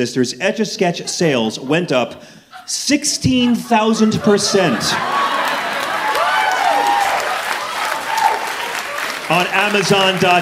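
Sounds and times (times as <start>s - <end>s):
speech: 0.0s - 5.3s, 9.3s - 10.4s
laughter: 0.8s - 10.4s
audience applauding during a talk: 5.0s - 10.4s.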